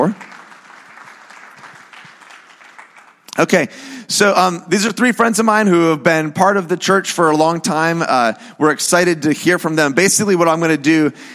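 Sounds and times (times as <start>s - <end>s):
speech: 0.0s - 0.2s, 3.4s - 11.3s
audience applause: 0.0s - 3.3s.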